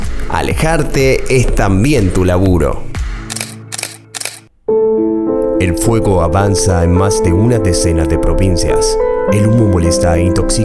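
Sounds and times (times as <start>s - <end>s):
speech: 0.3s - 2.9s, 5.6s - 10.6s
camera shutter clicking as a photo is taken: 3.2s - 4.5s.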